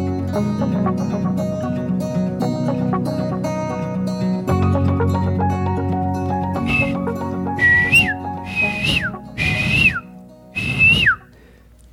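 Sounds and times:
music: 0.0 - 11.6
person whistling an imitation of a bird call: 6.6 - 7.0, 7.6 - 11.3.

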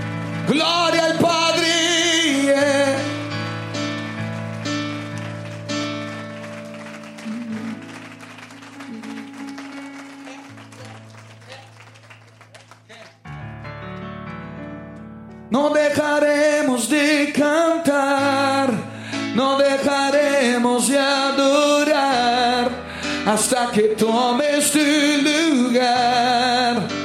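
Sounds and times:
sustained keyboard-like music: 0.0 - 27.0
speech: 0.5 - 1.2, 23.3 - 27.0
clapping in a worship service: 3.7 - 13.3.

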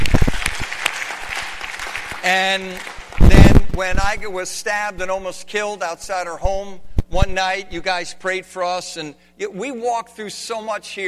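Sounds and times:
audience hand clapping: 0.0 - 3.8
speech: 2.2 - 11.0.

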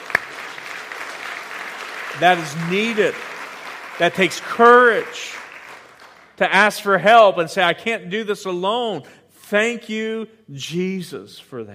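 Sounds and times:
audience applause: 0.0 - 6.4
speech: 2.2 - 3.3, 4.0 - 5.4, 6.4 - 11.7.

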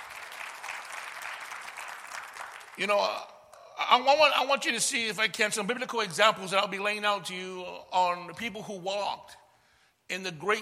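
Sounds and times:
audience applause: 0.0 - 2.8
speech: 2.8 - 9.4, 10.1 - 10.6.

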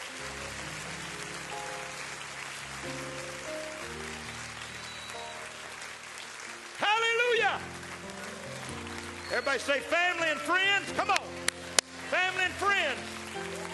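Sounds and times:
audience clapping hands: 0.0 - 13.7
speech: 9.3 - 11.4, 12.1 - 13.7.

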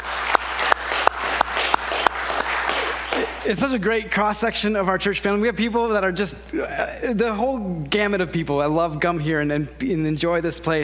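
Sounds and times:
audience applause: 0.0 - 3.6
speech: 3.5 - 10.8.

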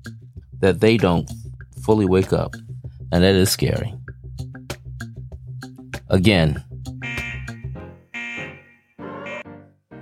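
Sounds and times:
speech: 0.6 - 4.0, 6.1 - 6.7
alarm buzzer: 7.0 - 7.6, 8.2 - 9.5.

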